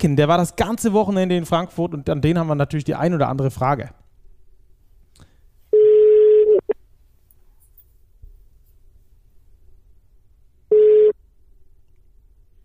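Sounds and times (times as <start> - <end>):
speech: 0.0 - 4.0
telephone call tone while calling: 5.7 - 6.8, 10.7 - 11.2.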